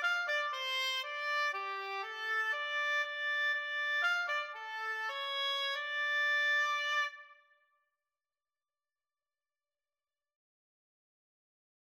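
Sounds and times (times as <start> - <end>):
oboe duet: 0.0 - 7.3.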